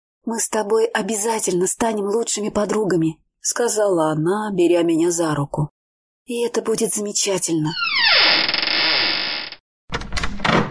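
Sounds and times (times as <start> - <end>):
speech: 0.3 - 8.1
door flung wide open, nearly torn off its hinges, creaking: 7.7 - 10.6.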